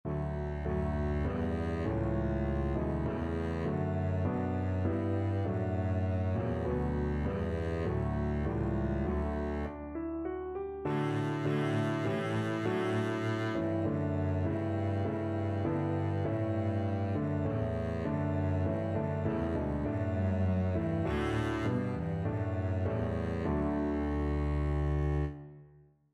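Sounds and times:
double bass playing an anthem: 0.1s - 9.8s, 10.9s - 25.4s.

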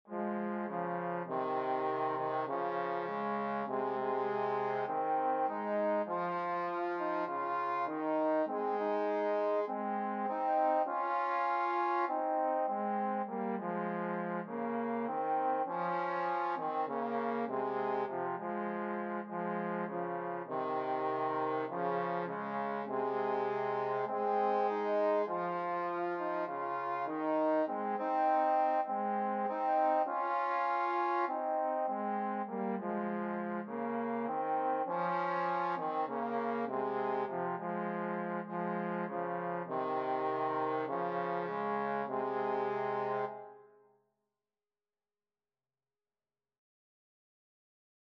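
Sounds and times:
trombone duet: 0.1s - 43.5s.

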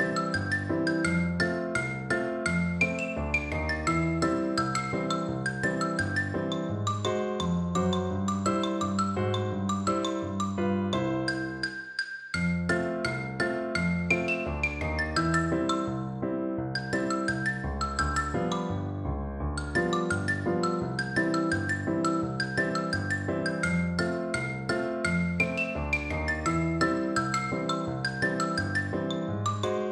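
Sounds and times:
percussion: 0.0s - 7.7s, 11.2s - 16.0s, 16.8s - 18.7s, 19.6s - 29.7s
xylophone playing rag: 0.0s - 16.2s, 16.8s - 19.0s, 19.6s - 29.9s.

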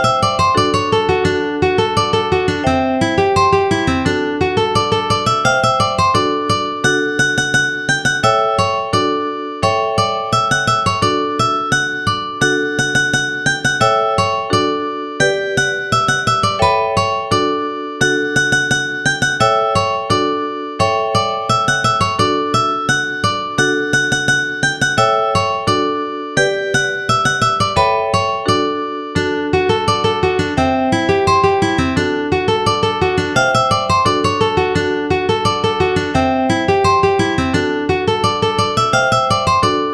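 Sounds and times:
ukulele playing: 0.0s - 20.4s, 21.0s - 39.9s.

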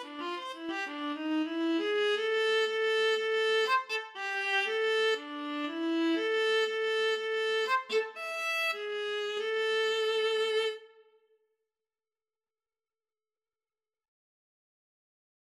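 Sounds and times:
viola: 0.0s - 11.0s.

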